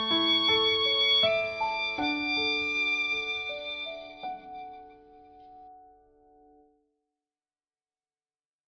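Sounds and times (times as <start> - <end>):
violin: 0.0 - 5.6.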